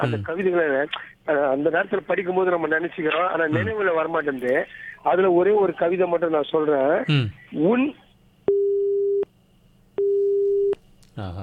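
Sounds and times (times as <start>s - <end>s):
speech: 0.0s - 8.0s, 11.2s - 11.4s
telephone busy tone after a caller's line was cut off: 8.5s - 9.2s, 10.0s - 10.8s.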